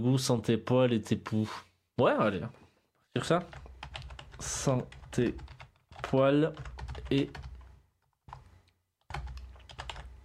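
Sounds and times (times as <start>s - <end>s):
speech: 0.0s - 3.7s, 4.4s - 7.5s
typing on a new computer keyboard: 3.5s - 10.1s.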